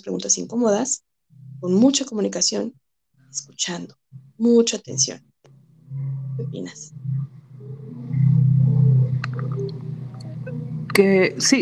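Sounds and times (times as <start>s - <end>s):
speech: 0.0s - 5.3s, 6.4s - 7.2s, 11.0s - 11.6s
powerful engine roaring outside: 5.5s - 11.6s.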